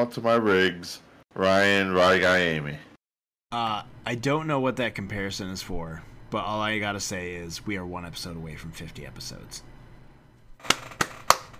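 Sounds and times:
speech: 0.0 - 2.9, 3.5 - 9.7
hand clapping: 10.6 - 11.5.

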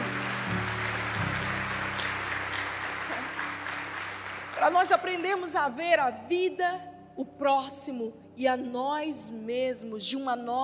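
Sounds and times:
audience applauding: 0.0 - 5.5
speech: 4.7 - 10.6.

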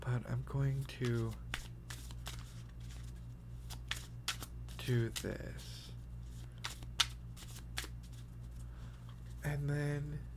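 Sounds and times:
speech: 0.2 - 1.5, 4.9 - 5.8, 9.4 - 10.3
playing cards being snap-shuffled: 1.0 - 5.4, 6.3 - 8.6.

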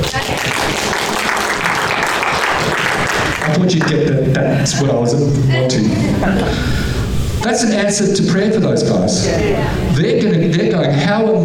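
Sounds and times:
audience clapping: 0.0 - 4.1
speech: 3.6 - 11.4.

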